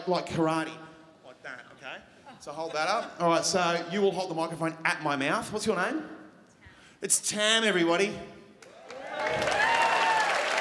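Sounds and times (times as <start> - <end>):
speech: 0.0 - 6.2, 7.0 - 8.4
audience applause: 8.6 - 10.5
faint cheering: 8.7 - 10.5.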